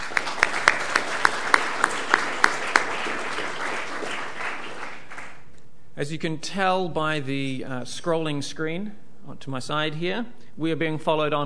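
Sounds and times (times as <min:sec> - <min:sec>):
brief round of applause: 0:00.0 - 0:05.5
speech: 0:06.0 - 0:11.4.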